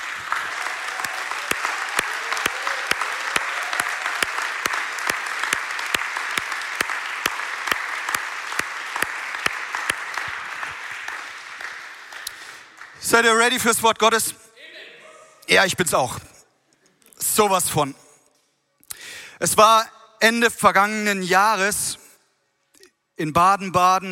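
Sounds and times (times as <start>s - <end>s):
audience applause: 0.0s - 13.5s
speech: 13.2s - 14.4s, 15.5s - 16.3s, 17.4s - 18.0s, 19.4s - 22.0s, 23.2s - 24.1s.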